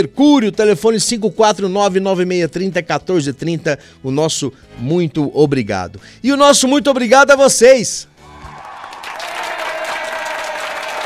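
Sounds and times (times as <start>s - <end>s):
speech: 0.0s - 8.1s
crowd applause: 8.2s - 11.0s.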